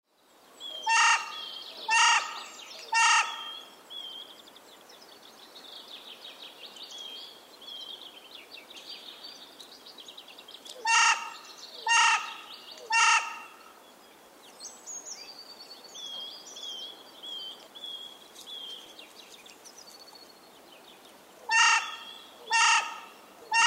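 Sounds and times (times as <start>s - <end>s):
carrion crow giving harsh hoarse caws: 0.9s - 3.5s, 10.8s - 13.6s, 21.5s - 23.6s.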